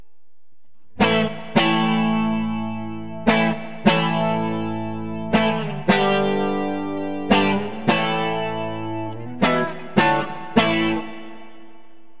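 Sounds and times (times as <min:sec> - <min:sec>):
clean guitar bridge: 0:00.8 - 0:12.1.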